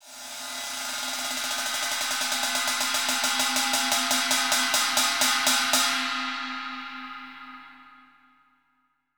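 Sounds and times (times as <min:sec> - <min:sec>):
ride cymbal: 0:00.0 - 0:06.9.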